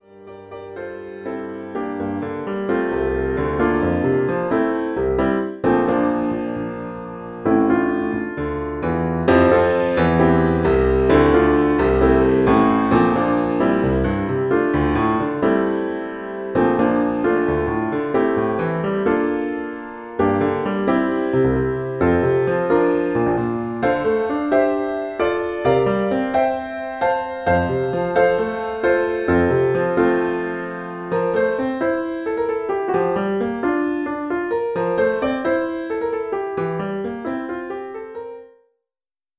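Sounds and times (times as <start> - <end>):
advanced piano solo: 0.0 - 38.7.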